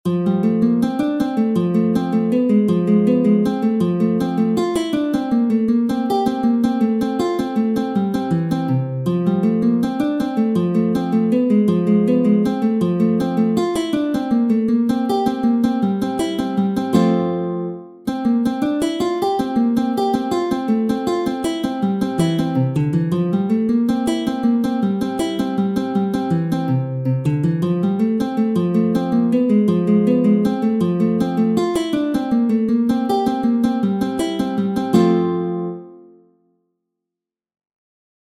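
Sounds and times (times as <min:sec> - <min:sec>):
guitar method piece: 0:00.0 - 0:36.5.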